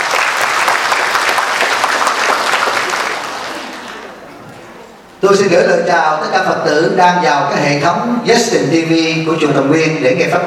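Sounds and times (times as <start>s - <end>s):
Buddhist followers at a dharma gathering applauding a monk: 0.0s - 4.3s
speech: 5.4s - 10.4s.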